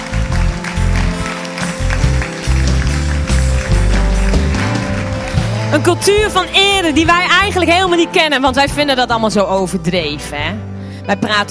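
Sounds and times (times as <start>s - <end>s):
audience applause: 0.0s - 7.7s
loud music with deep shifting bass line: 0.0s - 11.4s
speech: 5.8s - 11.4s.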